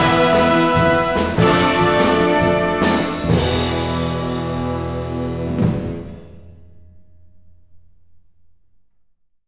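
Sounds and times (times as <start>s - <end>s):
brass instruments: 0.0s - 6.6s.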